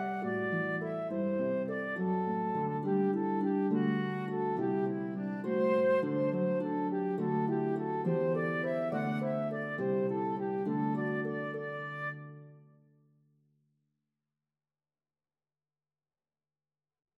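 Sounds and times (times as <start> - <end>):
flute playing a lively jig: 0.0 - 12.6.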